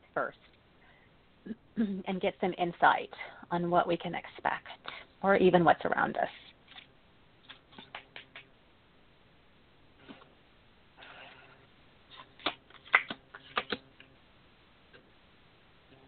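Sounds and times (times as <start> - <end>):
speech: 0.2 - 0.6, 1.4 - 6.4
Universal Waite tarot cards being shuffled: 6.4 - 8.5, 12.1 - 13.8.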